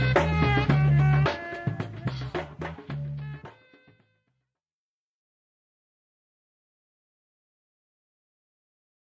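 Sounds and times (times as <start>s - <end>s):
African band playing: 0.0s - 3.8s.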